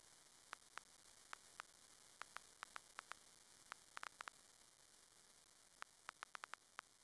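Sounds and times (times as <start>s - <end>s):
vinyl noise: 0.5s - 4.3s, 5.8s - 6.7s.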